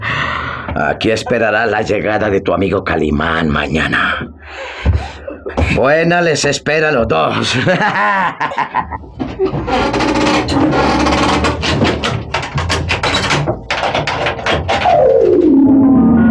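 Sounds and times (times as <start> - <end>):
speech: 0.8 - 4.9, 5.7 - 11.4
laughter: 4.7 - 6.0, 7.1 - 9.9
bolts and latches clanking: 9.1 - 15.0
heavy door being shut: 9.1 - 15.8
low descending tone: 14.8 - 16.2.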